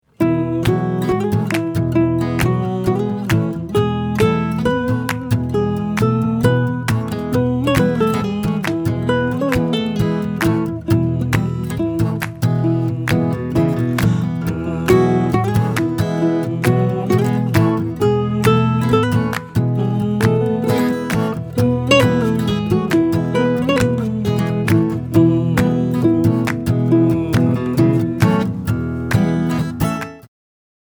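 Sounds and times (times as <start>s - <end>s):
instrumental music: 0.0s - 30.3s.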